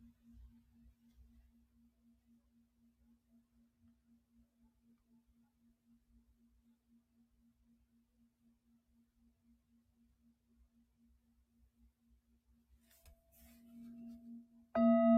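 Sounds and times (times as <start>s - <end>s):
singing bowl humming on a low note: 13.4s - 15.1s
higher ringing tone: 13.9s - 15.1s.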